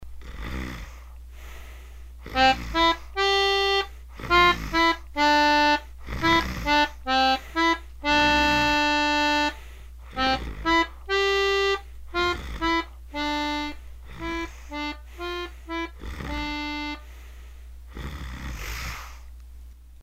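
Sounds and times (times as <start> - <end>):
lullaby music: 2.5 - 9.6, 10.3 - 17.1.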